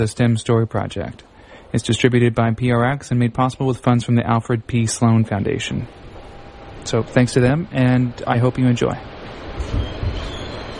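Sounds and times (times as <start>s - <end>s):
speech: 0.0s - 6.1s, 6.8s - 10.0s
New York City subway train running on rails: 4.3s - 10.7s.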